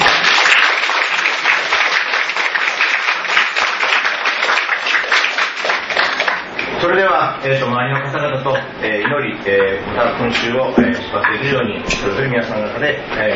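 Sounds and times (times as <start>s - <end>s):
applause: 0.0s - 6.7s
speech: 6.8s - 13.3s.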